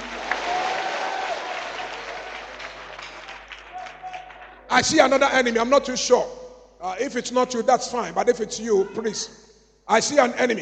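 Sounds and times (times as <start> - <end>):
audience clapping hands: 0.0 - 5.1
speech: 4.8 - 10.6.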